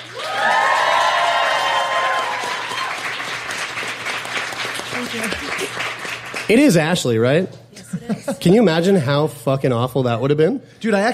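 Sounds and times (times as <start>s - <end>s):
audience cheering and whooping: 0.0s - 3.5s
audience applause welcoming a guest: 0.0s - 7.0s
speech: 5.1s - 5.7s, 6.5s - 11.1s.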